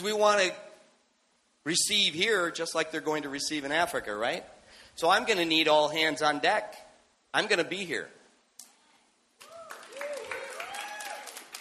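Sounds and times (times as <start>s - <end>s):
speech: 0.0s - 0.7s, 1.6s - 8.2s
audience clapping: 9.4s - 11.5s.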